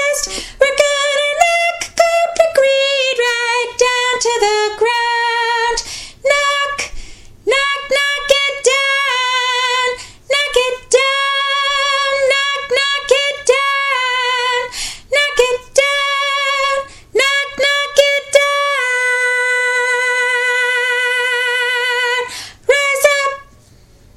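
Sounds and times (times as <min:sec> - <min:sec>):
soprano voice singing: 0:00.0 - 0:23.5.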